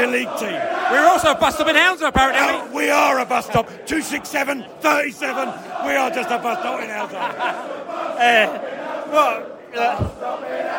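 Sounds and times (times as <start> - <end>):
football crowd chanting: 0.0 - 10.7
speech: 0.0 - 10.7
laughter: 6.2 - 8.6
low thump: 10.0 - 10.3.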